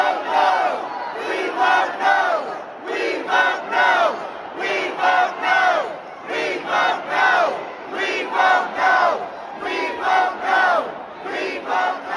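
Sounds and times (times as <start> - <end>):
hundreds of protesters chanting a vote-no slogan inside the Ohio State Capitol: 0.0 - 12.1.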